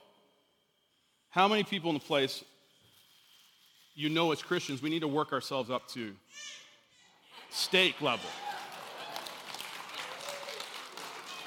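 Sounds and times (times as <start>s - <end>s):
speech: 1.3s - 2.5s, 4.0s - 6.6s, 7.5s - 8.6s
audience applause, women clapping: 7.8s - 11.4s.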